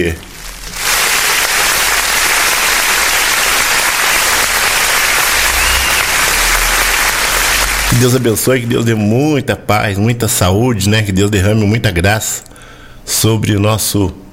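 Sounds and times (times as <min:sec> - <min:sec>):
speech: 0:00.0 - 0:00.3, 0:07.9 - 0:14.3
round of applause: 0:00.8 - 0:08.4.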